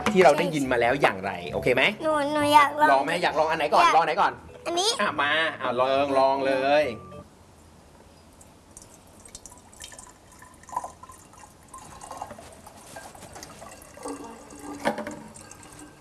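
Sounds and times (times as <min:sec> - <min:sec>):
speech: 0:00.1 - 0:07.1
water poured into a container: 0:08.8 - 0:15.9.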